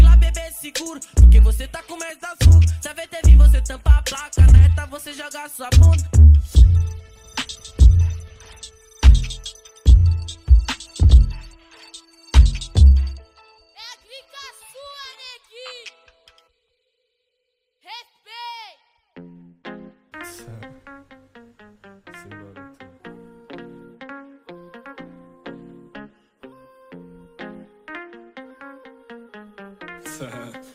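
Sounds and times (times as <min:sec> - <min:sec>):
Brazilian trap beat with deep bass: 0:00.0 - 0:11.6, 0:12.4 - 0:13.2.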